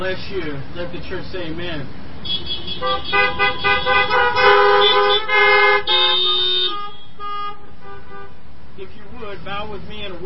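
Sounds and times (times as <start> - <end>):
speech: 0.0 - 6.4, 8.8 - 10.2
car horns honking in a church parking lot: 2.2 - 9.2.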